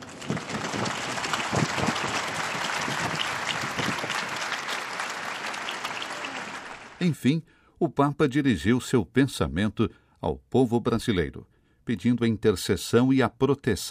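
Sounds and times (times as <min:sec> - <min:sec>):
crowd applause for the new Blessed: 0:00.0 - 0:07.0
speech: 0:07.0 - 0:13.9.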